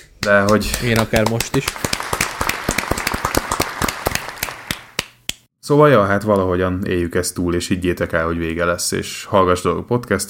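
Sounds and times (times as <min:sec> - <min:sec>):
speech: 0:00.2 - 0:02.0, 0:05.7 - 0:10.2
hands clapping: 0:00.2 - 0:05.5.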